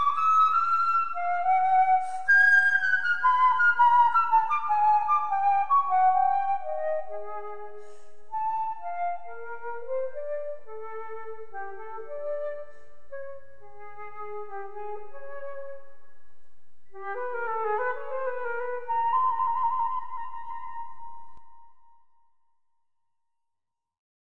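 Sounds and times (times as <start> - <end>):
solo flute: 0.0 - 22.3.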